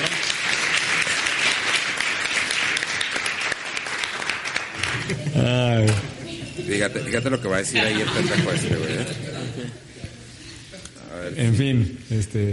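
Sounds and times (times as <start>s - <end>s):
crowd applause: 0.0s - 5.8s
speech: 5.4s - 6.0s, 6.7s - 9.4s, 11.3s - 12.5s
laughter: 6.2s - 10.9s.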